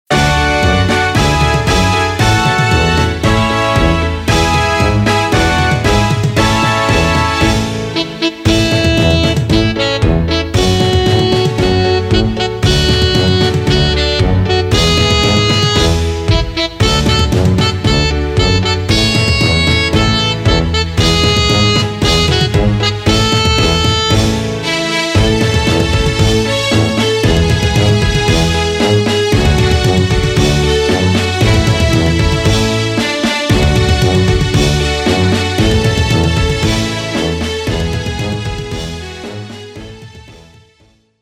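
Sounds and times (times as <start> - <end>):
instrumental anthem: 0.1 - 40.9.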